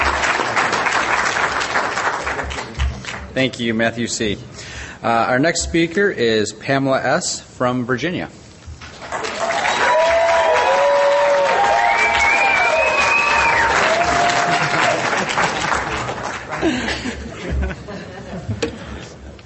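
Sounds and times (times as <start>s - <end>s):
audience applause and cheering: 0.0s - 3.3s, 8.9s - 17.4s
speech: 3.4s - 8.4s
laughter: 13.9s - 19.1s.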